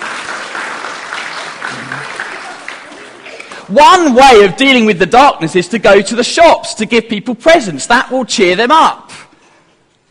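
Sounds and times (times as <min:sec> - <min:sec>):
audience applause: 0:00.0 - 0:03.7
speech: 0:03.7 - 0:09.2.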